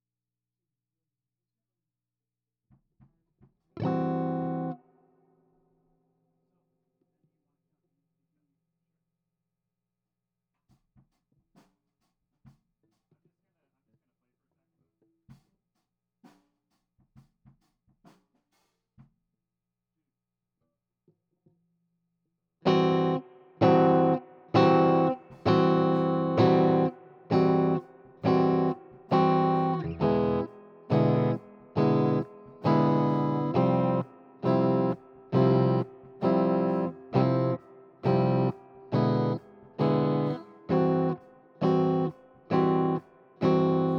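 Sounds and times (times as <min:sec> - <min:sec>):
guitar: 0:03.8 - 0:04.9, 0:22.6 - 0:43.9.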